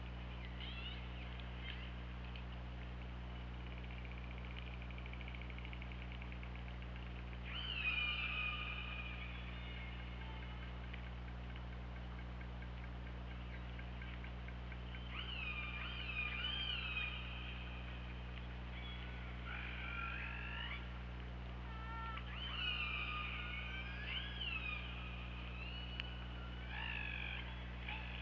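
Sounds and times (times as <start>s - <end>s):
steady low hum: 0.0s - 28.2s
killer whale clicks: 1.3s - 7.5s, 10.1s - 15.2s.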